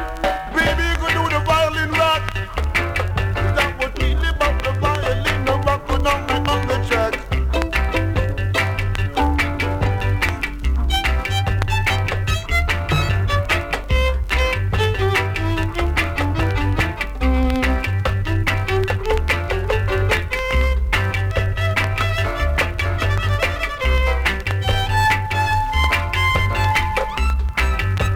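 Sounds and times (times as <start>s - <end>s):
violin: 0.1s - 28.1s.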